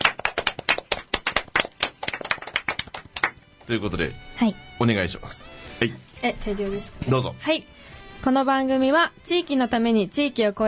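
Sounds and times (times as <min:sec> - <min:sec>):
few people clapping in a studio: 0:00.0 - 0:03.8
speech: 0:03.7 - 0:10.6.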